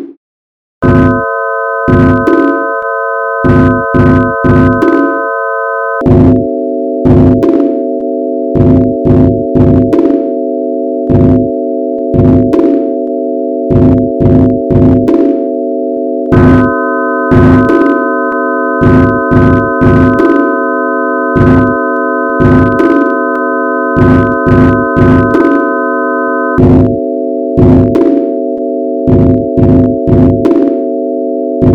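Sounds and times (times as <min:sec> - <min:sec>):
sine wave tone: 0:00.8 - 0:31.7.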